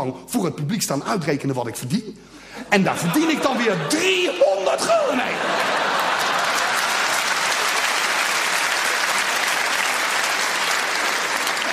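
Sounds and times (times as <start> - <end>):
speech: 0.0 - 5.9
laughter: 2.7 - 8.0
audience applause: 5.0 - 11.7.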